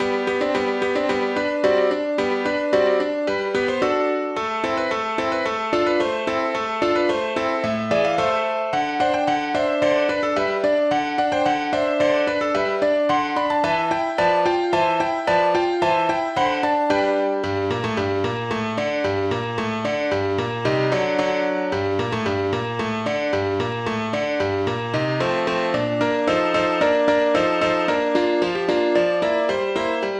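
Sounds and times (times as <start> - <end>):
ballet music in G major: 0.0 - 30.1.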